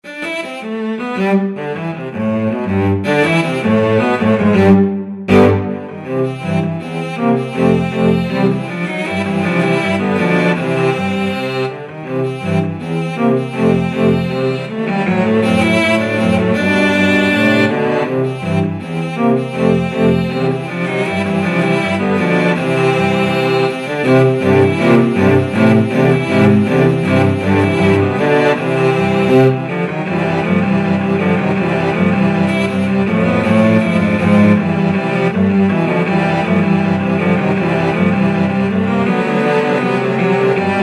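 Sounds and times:
cello quartet: 0.0 - 40.8.

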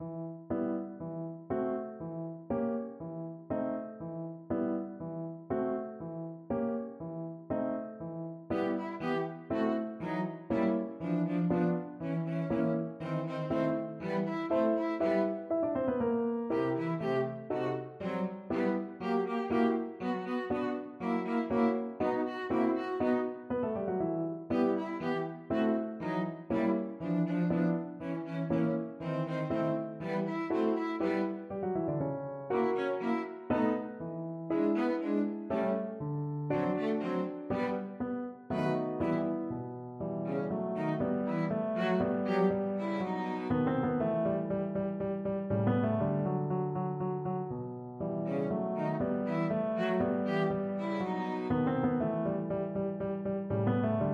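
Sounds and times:
piano trio music: 0.0 - 54.1.

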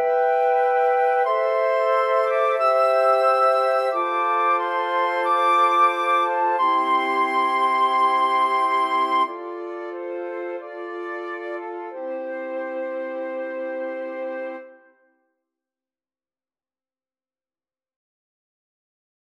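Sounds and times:
flute quartet playing a largo: 0.0 - 14.7.

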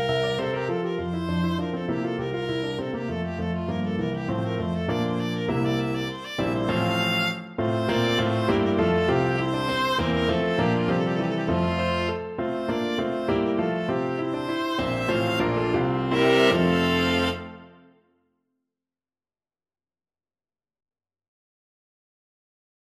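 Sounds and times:
viola playing a galliard sonata: 0.0 - 17.9.

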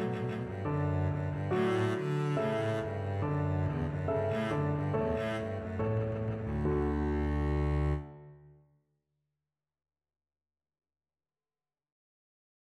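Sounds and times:
double bass: 0.0 - 8.2.

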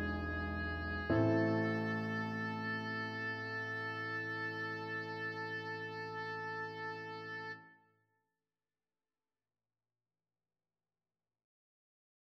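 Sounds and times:
oboe playing classical music: 0.0 - 7.7.

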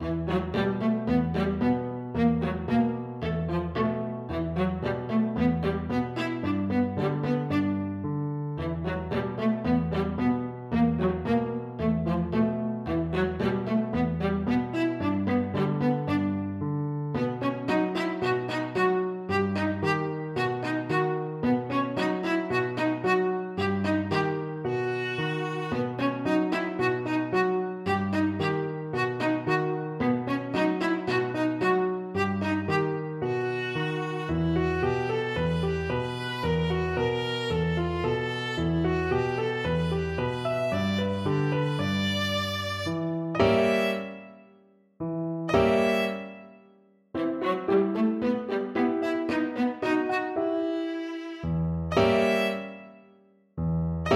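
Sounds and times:
viola: 0.0 - 44.5, 45.5 - 46.6, 47.3 - 53.1.

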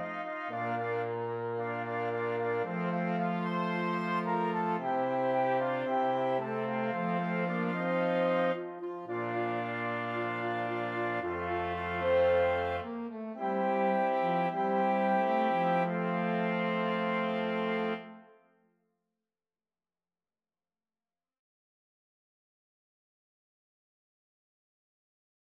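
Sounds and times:
flexible mixed ensemble of five players: 0.0 - 18.1.

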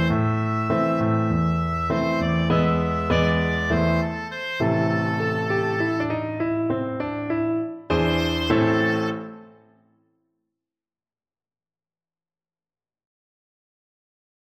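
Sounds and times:
oboe: 0.0 - 9.8.

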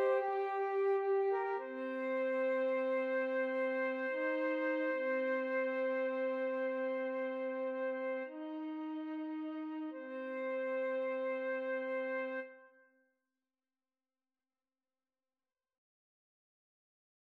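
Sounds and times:
flute trio playing: 0.0 - 12.3.

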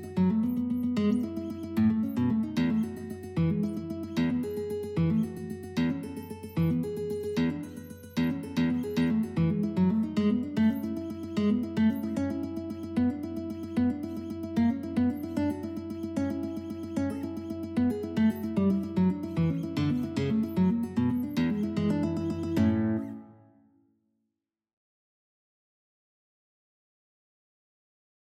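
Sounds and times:
guitar etude: 0.0 - 23.8.

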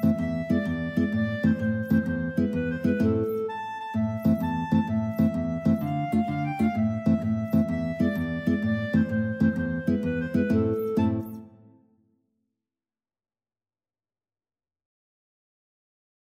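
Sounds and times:
clarinet playing tarantella: 0.0 - 11.8
guitar: 0.0 - 11.8.

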